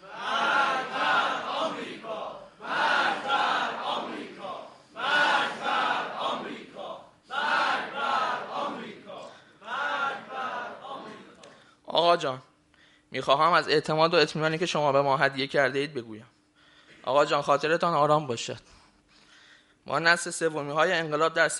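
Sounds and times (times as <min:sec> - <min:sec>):
large crowd chanting a slogan in unison: 0:00.0 - 0:11.4
speech: 0:12.1 - 0:12.5, 0:13.1 - 0:16.4, 0:17.0 - 0:18.8, 0:19.9 - 0:21.5.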